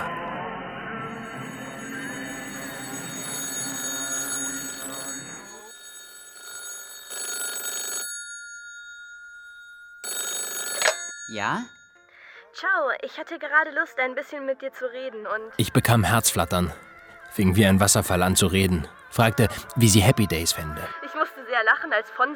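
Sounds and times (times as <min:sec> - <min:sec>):
telephone bell ringing: 0:01.1 - 0:12.1, 0:15.6 - 0:20.9
speech: 0:11.3 - 0:11.8, 0:12.6 - 0:22.3.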